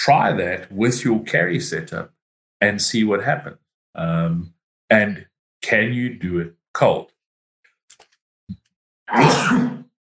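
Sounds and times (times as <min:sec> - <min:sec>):
speech: 0:00.0 - 0:07.1, 0:07.9 - 0:09.8
person sneezing: 0:09.1 - 0:09.8.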